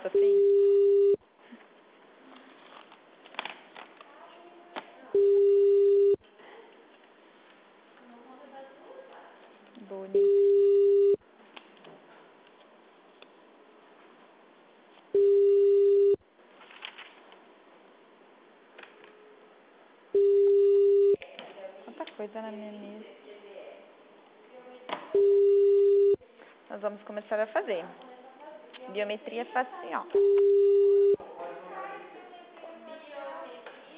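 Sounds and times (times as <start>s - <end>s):
telephone dial tone after hanging up: 0.1s - 1.2s, 5.2s - 6.2s, 10.2s - 11.2s, 15.2s - 16.2s, 20.2s - 21.2s, 25.2s - 26.2s, 30.2s - 31.2s
speech: 26.8s - 28.1s, 28.9s - 30.8s.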